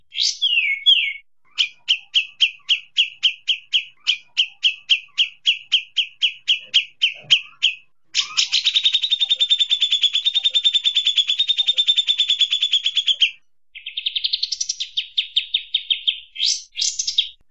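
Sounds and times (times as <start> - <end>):
Kapas Tembak bird chirping melodiously with long rapid ngepik calls: 0.0 - 17.4.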